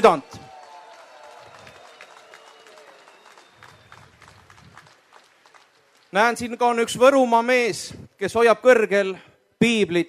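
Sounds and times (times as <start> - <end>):
speech: 0.0 - 0.3, 6.1 - 10.0
crowd applause and cheers at a rally: 0.0 - 6.9.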